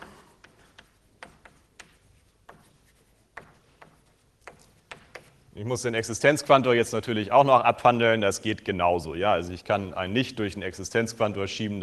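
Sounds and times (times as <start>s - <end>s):
writing on a board during a mathematics lecture: 0.0s - 5.5s
low hiss: 0.0s - 11.8s
speech: 5.6s - 11.8s.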